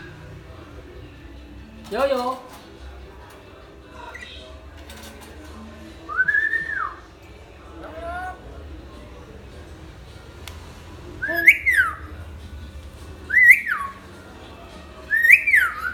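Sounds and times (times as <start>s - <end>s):
speech: 1.9s - 2.6s
hill myna whistling: 6.1s - 7.1s, 11.2s - 12.1s, 13.3s - 14.1s, 15.1s - 15.9s.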